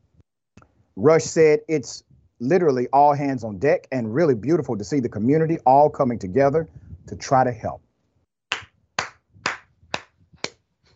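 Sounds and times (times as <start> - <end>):
speech: 1.0 - 7.8
sharp crisp hand claps: 8.5 - 10.6.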